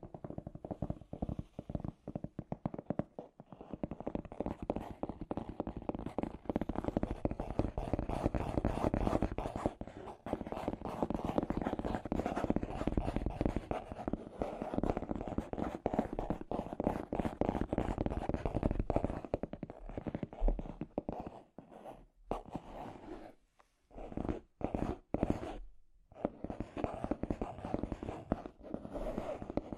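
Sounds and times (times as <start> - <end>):
scratchy tapping: 0.0 - 29.7.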